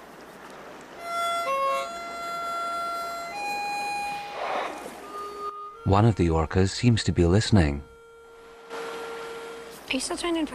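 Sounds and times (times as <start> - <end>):
harmonica playing slow held notes: 1.0 - 9.9
speech: 5.9 - 7.9, 9.9 - 10.5.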